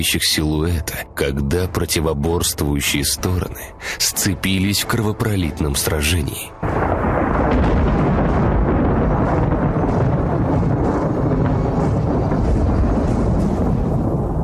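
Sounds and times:
speech: 0.0 - 7.8
thunder clap: 6.6 - 14.4.

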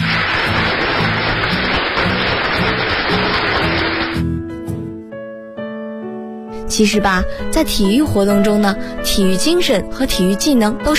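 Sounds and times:
warm applause from a crowd: 0.0 - 4.2
speech: 6.8 - 10.9.

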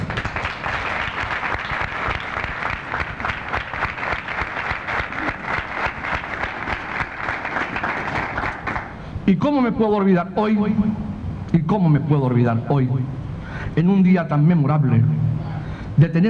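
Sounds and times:
audience applause: 0.0 - 9.0
speech: 9.3 - 11.0, 11.6 - 13.2, 13.8 - 15.2, 16.0 - 16.2.

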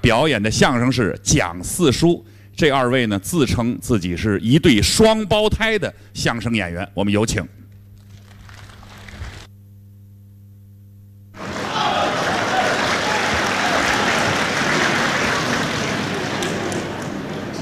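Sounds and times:
speech: 0.1 - 7.6
sparse applause from a live audience at a crosstalk comedy show in Beijing: 11.4 - 17.6.

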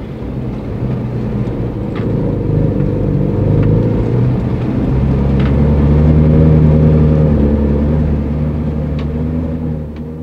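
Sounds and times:
car driving off: 0.0 - 10.2.

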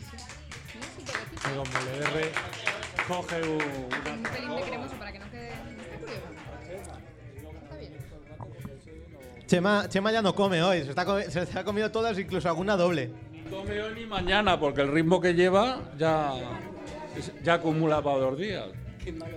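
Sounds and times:
audience applause: 0.7 - 4.9
speech: 1.5 - 5.0, 9.5 - 19.3.

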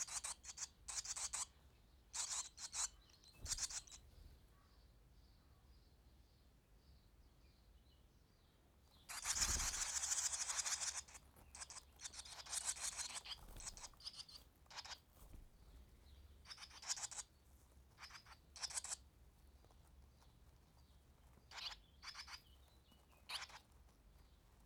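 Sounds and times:
swallow chicks chirping: 0.0 - 1.6, 2.2 - 4.2, 9.0 - 15.0, 16.2 - 17.3, 17.9 - 24.6.

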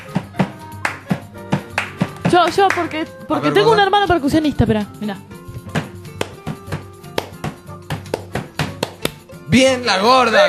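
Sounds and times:
hands tapping a coordination rhythm on a table: 0.0 - 3.0, 5.7 - 9.4
speech: 2.4 - 5.3, 9.5 - 10.4.

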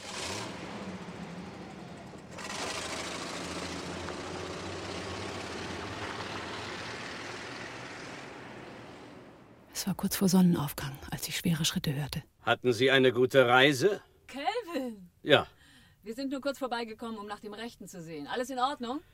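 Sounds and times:
cold car engine starting with hollow rumble: 0.0 - 9.7
speech: 9.8 - 14.4, 15.2 - 19.1.

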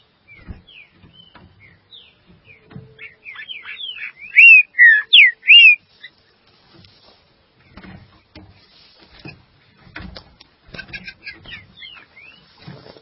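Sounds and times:
green-winged saltator song of slurred whistles: 4.0 - 5.8.

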